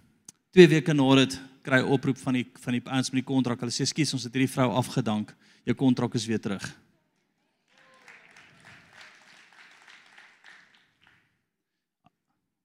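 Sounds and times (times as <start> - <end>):
speech: 0.5 - 6.9
audience hand clapping: 7.6 - 11.4.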